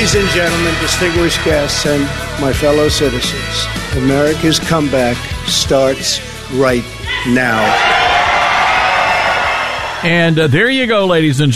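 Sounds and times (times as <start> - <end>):
speech: 0.0 - 7.9, 10.0 - 11.5
crowd cheering and applauding at a rally: 7.1 - 10.4.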